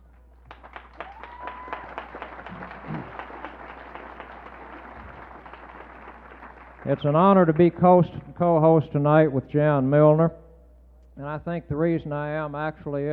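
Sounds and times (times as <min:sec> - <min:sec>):
crowd applause: 0:00.0 - 0:07.8
speech: 0:06.9 - 0:10.4, 0:11.2 - 0:13.1.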